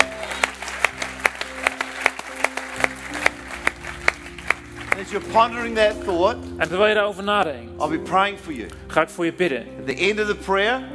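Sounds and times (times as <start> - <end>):
audience applause: 0.0 - 5.8
speech: 5.1 - 10.9.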